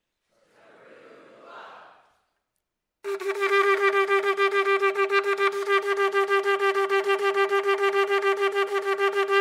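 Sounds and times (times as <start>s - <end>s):
shofar blowing teruah call: 3.1s - 9.3s.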